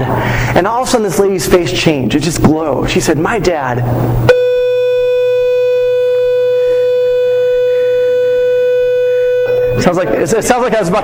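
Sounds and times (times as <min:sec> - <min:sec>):
speech: 0:00.0 - 0:04.5, 0:09.8 - 0:11.0
electronic school bell ringing: 0:04.3 - 0:10.1.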